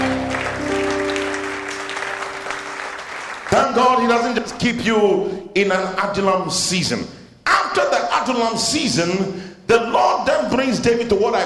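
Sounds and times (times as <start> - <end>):
sustained low keyboard chords: 0.0 - 4.5
audience clapping: 0.0 - 4.7
speech: 3.6 - 11.4.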